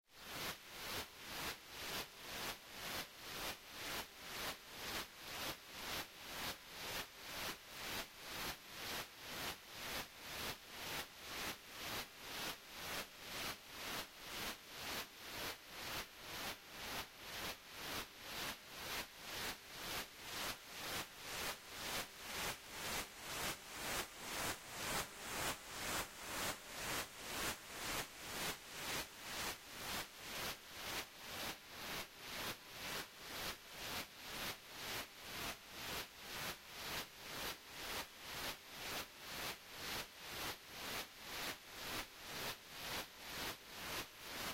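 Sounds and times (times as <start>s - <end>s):
noise: 0.0s - 44.5s.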